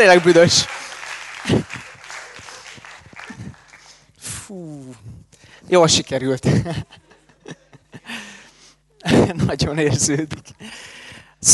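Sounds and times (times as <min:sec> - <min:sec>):
speech: 0:00.0 - 0:00.8, 0:05.7 - 0:07.0, 0:09.3 - 0:11.5
audience applause: 0:00.0 - 0:04.0.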